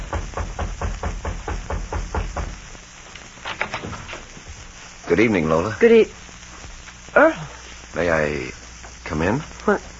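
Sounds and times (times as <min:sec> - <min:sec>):
raps on a wooden door: 0:00.0 - 0:02.6
brisk thumps: 0:00.0 - 0:04.7
speech: 0:05.1 - 0:06.2, 0:08.2 - 0:08.6, 0:09.2 - 0:09.9.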